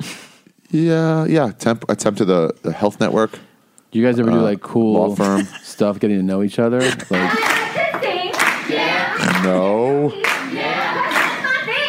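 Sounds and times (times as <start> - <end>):
speech: 0.0 - 7.4, 9.4 - 10.3
half-hearted applause from a small group: 7.3 - 9.6, 10.2 - 11.7.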